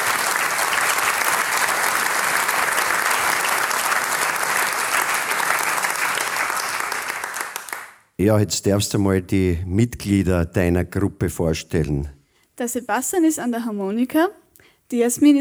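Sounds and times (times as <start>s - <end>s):
audience applause: 0.0s - 8.1s
speech: 8.2s - 15.3s.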